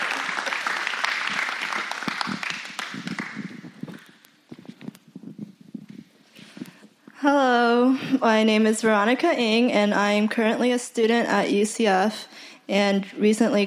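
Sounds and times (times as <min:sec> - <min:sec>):
crowd applause: 0:00.0 - 0:04.2
speech: 0:07.2 - 0:13.6.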